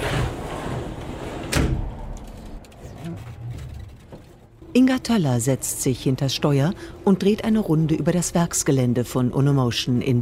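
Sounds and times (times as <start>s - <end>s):
sliding door on a cargo bike container: 0.0s - 4.6s
low rumble: 0.3s - 10.2s
speech: 4.8s - 10.2s.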